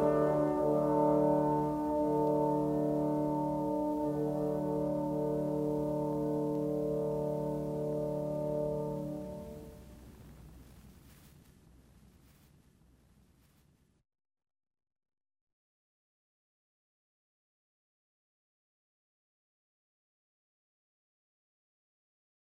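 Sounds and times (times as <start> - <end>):
four trombones playing in B flat major: 0.0 - 10.0.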